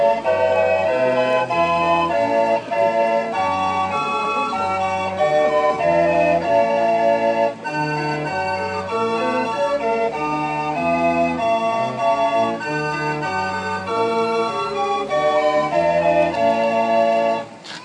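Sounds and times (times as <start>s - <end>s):
street organ in Beverley: 0.0s - 17.8s.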